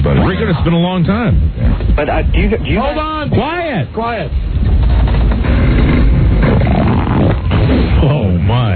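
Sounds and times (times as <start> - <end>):
recorded fart played on air: 0.0 - 2.6, 4.6 - 8.4
speech: 0.5 - 5.0.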